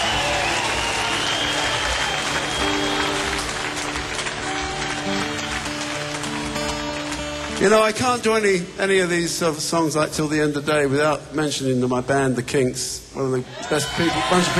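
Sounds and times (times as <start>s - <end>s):
audience applause: 0.0s - 9.2s, 13.6s - 14.5s
speech: 7.6s - 14.5s.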